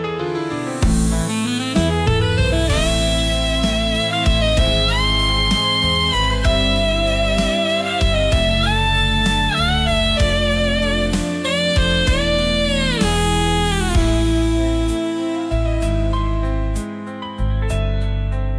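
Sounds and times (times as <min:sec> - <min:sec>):
soul saxophone music: 0:00.2 - 0:18.4.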